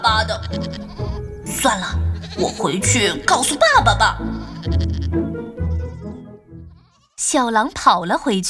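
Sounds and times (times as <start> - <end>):
sheep bleating: 0.1 - 1.3, 1.8 - 3.3, 4.0 - 7.9
speech: 1.7 - 5.2, 7.3 - 8.4.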